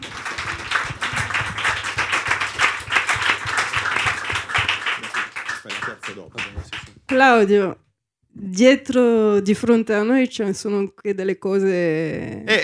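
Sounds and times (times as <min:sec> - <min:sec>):
audience applause: 0:00.0 - 0:07.2
speech: 0:07.1 - 0:07.8, 0:08.4 - 0:12.6.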